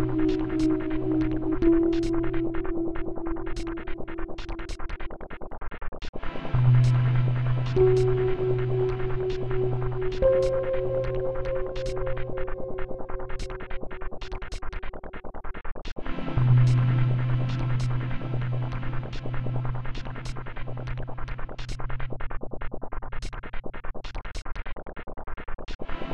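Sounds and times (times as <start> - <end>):
in-game background music: 0.0 - 5.1, 6.2 - 14.9, 16.0 - 22.0.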